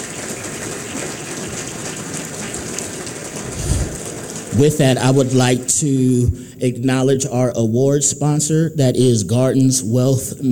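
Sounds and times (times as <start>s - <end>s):
audience round of applause: 0.0s - 5.7s
speech: 4.6s - 10.5s.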